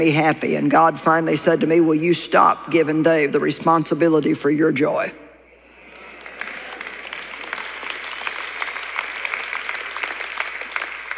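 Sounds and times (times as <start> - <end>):
speech: 0.0 - 5.2
half-hearted audience applause: 5.9 - 11.1.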